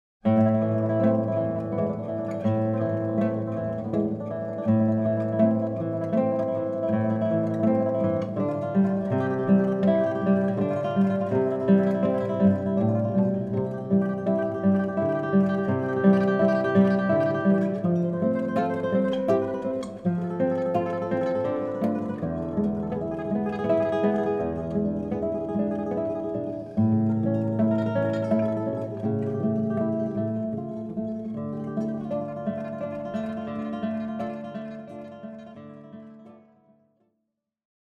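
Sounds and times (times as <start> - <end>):
two guitars: 0.2 - 36.8.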